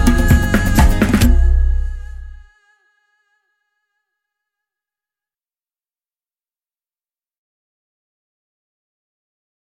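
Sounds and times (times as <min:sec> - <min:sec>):
instrumental music: 0:00.0 - 0:02.5.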